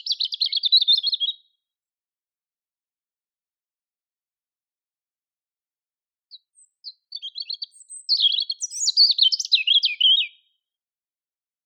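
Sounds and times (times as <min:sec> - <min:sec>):
European robin Erithacus rubecula singing: 0:00.0 - 0:01.5, 0:06.3 - 0:10.6.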